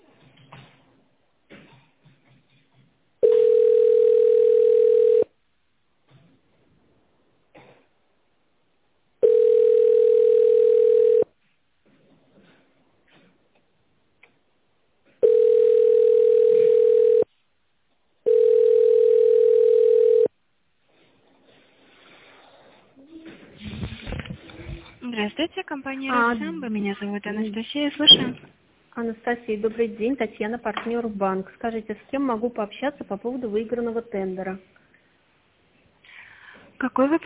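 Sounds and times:
telephone ringback tone while waiting for operator: 3.2s - 5.3s, 9.2s - 11.3s, 15.2s - 17.3s, 18.2s - 20.3s
speech: 25.4s - 34.8s, 36.8s - 37.2s.

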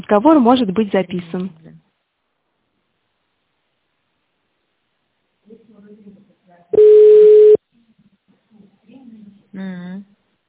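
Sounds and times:
speech: 0.0s - 1.7s
telephone ringback tone while connecting a call to a company secretary: 6.8s - 7.6s.

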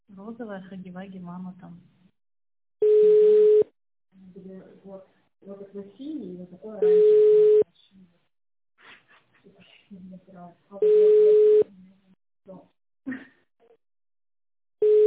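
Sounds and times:
speech: 0.2s - 2.0s, 4.2s - 8.2s, 9.4s - 13.3s
telephone ringback tone on a phone line: 2.8s - 3.7s, 6.8s - 7.6s, 10.8s - 11.7s, 14.8s - 15.0s.

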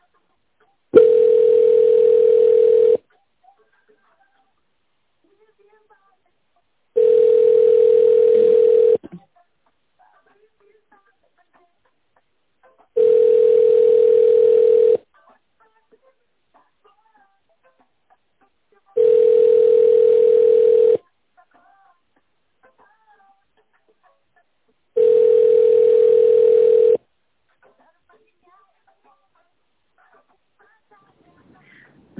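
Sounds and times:
telephone line tone on hold: 1.0s - 3.0s, 7.0s - 9.0s, 13.0s - 15.0s, 19.0s - 21.0s, 25.0s - 27.0s.

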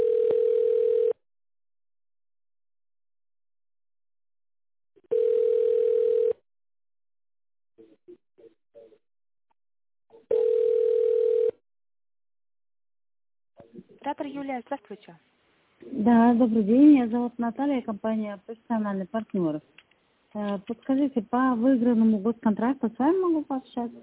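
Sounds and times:
telephone ringback tone while waiting for operator: 0.0s - 1.2s, 5.1s - 6.4s, 10.3s - 11.6s
speech: 14.0s - 24.0s.

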